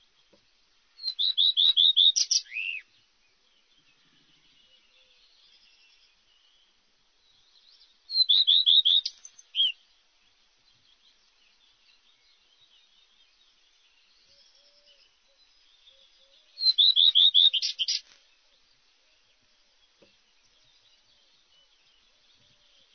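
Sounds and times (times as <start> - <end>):
white-fronted redstart singing: 0.0 - 22.9.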